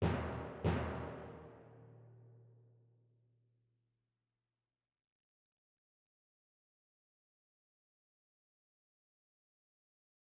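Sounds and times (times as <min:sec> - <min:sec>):
soft timpani hits in a cave: 0:00.0 - 0:02.2.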